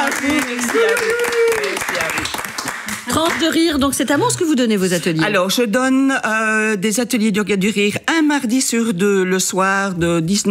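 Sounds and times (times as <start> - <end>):
audience applause: 0.0 - 3.6
speech: 3.2 - 10.5.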